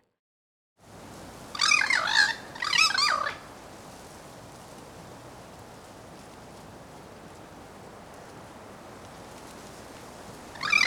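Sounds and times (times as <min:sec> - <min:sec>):
bird harsh squawks: 0:01.5 - 0:03.6, 0:10.5 - 0:10.8.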